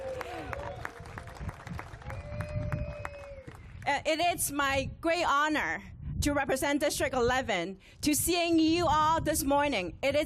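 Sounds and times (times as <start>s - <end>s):
audience applause: 0.0s - 3.7s
speech: 3.9s - 10.2s.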